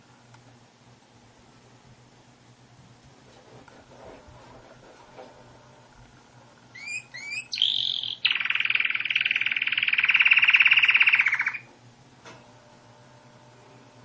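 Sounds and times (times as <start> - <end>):
canary singing: 6.7 - 11.7.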